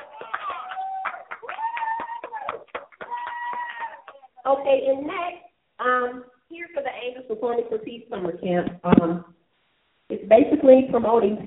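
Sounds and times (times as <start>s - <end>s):
audience hand clapping: 0.0s - 4.3s
speech: 4.4s - 9.4s, 10.3s - 11.4s.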